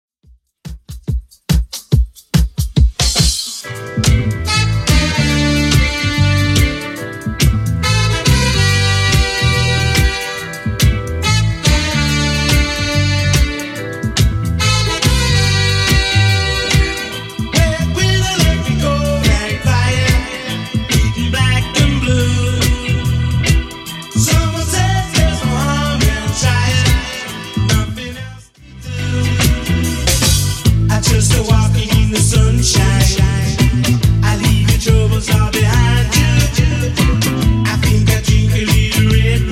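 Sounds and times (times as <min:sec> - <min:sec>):
80s Redrum drum machine beat: 0:00.2 - 0:28.1, 0:29.3 - 0:39.5.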